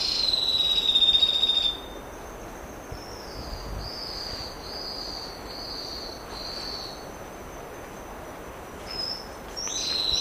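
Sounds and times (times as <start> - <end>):
rufous-breasted leaftosser song of sharp high whistled notes: 0.0 - 2.0, 2.9 - 7.1, 8.9 - 10.1.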